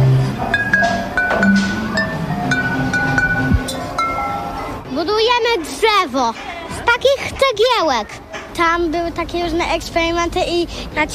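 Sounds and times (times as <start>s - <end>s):
music played on glass bottles: 0.0s - 4.8s
speech: 6.0s - 11.1s.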